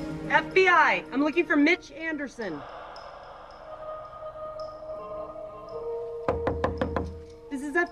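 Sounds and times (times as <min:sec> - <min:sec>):
speech: 0:00.3 - 0:02.8
woman knocking on a modern apartment door: 0:06.3 - 0:07.2.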